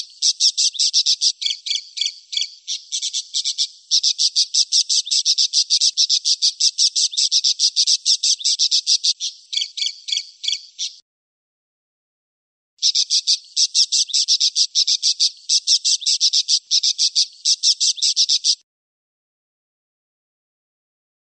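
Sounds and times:
parakeet chatter: 0.0s - 11.0s, 12.8s - 18.6s.

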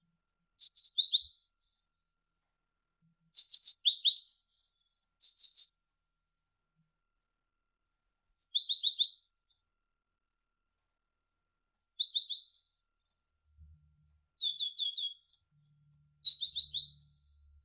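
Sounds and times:
great tit singing: 0.6s - 1.4s, 3.3s - 4.4s, 5.2s - 6.4s, 8.4s - 9.2s, 11.8s - 12.6s, 14.4s - 15.4s, 16.2s - 17.6s.

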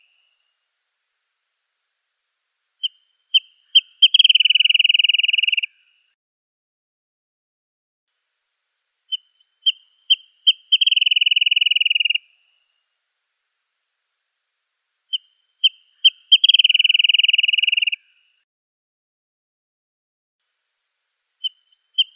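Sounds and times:
wrentit chirping: 2.8s - 6.0s, 9.1s - 12.7s, 15.1s - 18.3s, 21.4s - 22.1s.

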